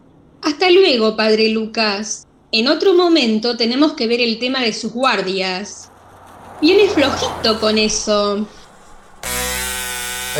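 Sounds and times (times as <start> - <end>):
speech: 0.6 - 5.9, 6.6 - 8.6
small motorbike without muffler: 5.8 - 10.3.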